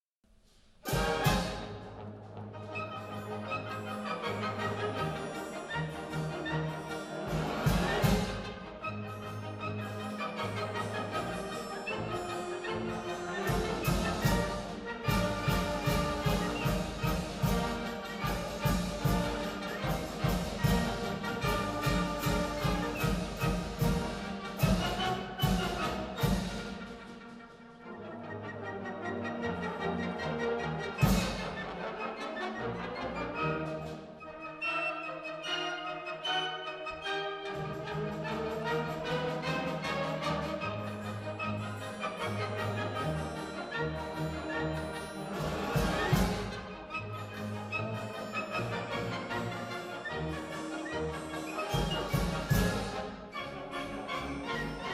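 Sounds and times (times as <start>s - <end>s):
polka music: 0.8s - 54.9s.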